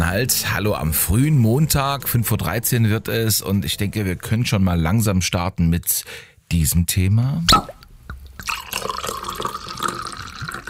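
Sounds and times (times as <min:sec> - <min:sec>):
speech: 0:00.1 - 0:07.8
wine from southern Saxony-Anhalt being poured: 0:07.5 - 0:10.6.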